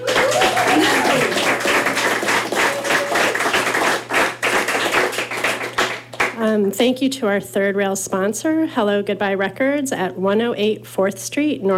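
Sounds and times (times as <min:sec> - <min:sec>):
live audience applause: 0:00.0 - 0:06.4
speech: 0:06.6 - 0:11.7.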